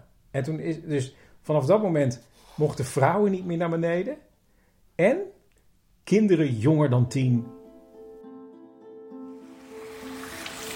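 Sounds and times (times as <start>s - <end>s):
speech: 0.4s - 4.3s, 5.0s - 5.4s, 6.1s - 7.6s
small waterfall splashing: 9.6s - 10.7s.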